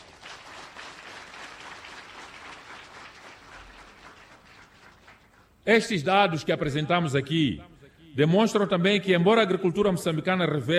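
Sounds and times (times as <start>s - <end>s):
audience applause: 0.0s - 5.5s
speech: 5.6s - 10.7s.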